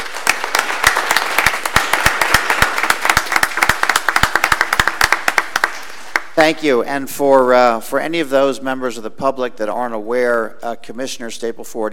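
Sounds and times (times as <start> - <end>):
audience applause for Girl Scouts: 0.0 - 6.4
speech: 6.4 - 11.9.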